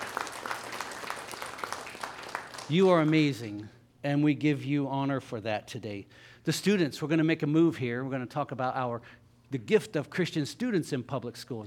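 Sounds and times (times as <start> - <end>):
audience applause: 0.0 - 3.1
speech: 2.7 - 11.6.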